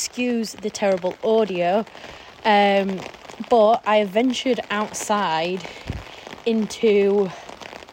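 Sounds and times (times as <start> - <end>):
speech: 0.0 - 7.4
heavy rain outdoors: 0.0 - 7.9.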